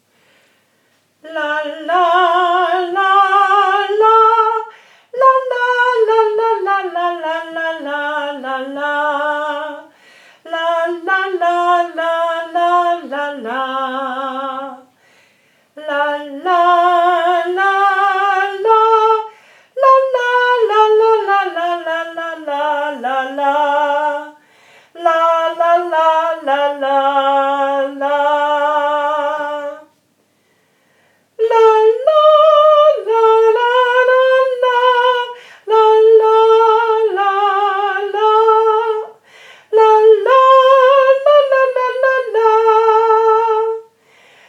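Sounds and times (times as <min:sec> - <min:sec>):
person singing la la la slowly: 0:01.2 - 0:15.0, 0:15.8 - 0:30.0, 0:31.4 - 0:44.4.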